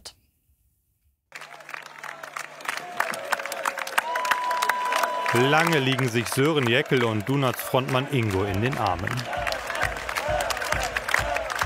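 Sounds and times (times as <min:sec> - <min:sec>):
continuous cheering and hubbub: 0:01.3 - 0:11.6
speech: 0:05.3 - 0:09.4
large festival crowd chanting a name: 0:07.8 - 0:11.6.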